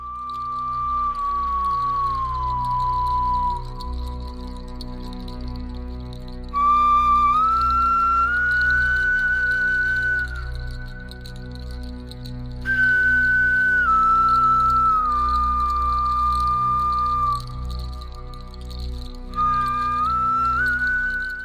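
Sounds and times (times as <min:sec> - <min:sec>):
flute made from a bear's thigh bone playing a slow melancholy melody: 0:00.0 - 0:04.6, 0:06.5 - 0:11.6, 0:12.7 - 0:18.6, 0:19.3 - 0:21.4.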